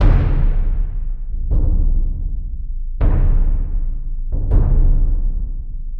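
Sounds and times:
bass drum: 0.0 - 5.9.

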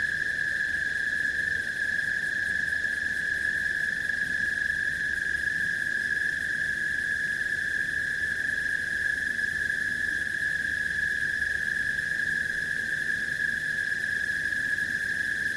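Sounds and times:
cicadas droning: 0.0 - 15.5.

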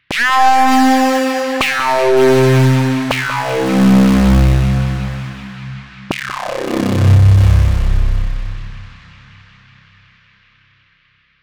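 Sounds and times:
psychedelic synth music: 0.1 - 8.9.

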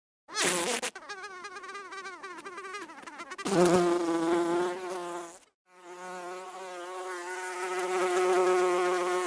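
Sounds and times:
bee buzzing: 0.4 - 9.2.

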